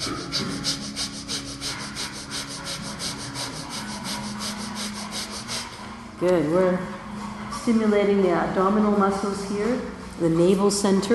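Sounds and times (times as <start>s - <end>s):
rapid panting breath of fire breathing: 0.0s - 6.1s
speech: 6.2s - 7.0s, 7.6s - 11.1s.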